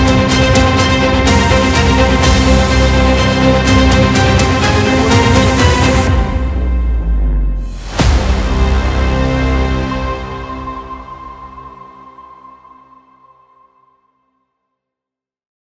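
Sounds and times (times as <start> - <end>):
epic trailer music: 0.0 - 12.3.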